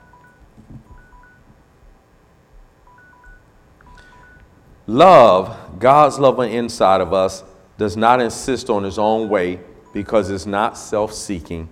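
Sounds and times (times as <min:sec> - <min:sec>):
two-tone electronic beeps: 0:00.0 - 0:01.5, 0:02.8 - 0:04.6, 0:09.2 - 0:10.5
speech: 0:04.9 - 0:11.7.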